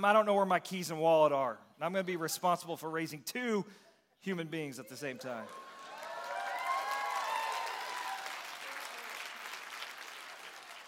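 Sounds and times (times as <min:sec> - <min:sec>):
speech: 0:00.0 - 0:05.7
voices shouting and whooping: 0:05.1 - 0:08.3
crowd applauding: 0:05.4 - 0:10.8.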